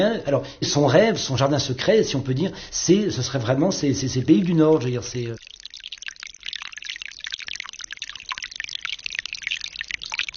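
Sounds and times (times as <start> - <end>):
speech: 0.0 - 5.5
gentle rain falling: 5.4 - 10.3.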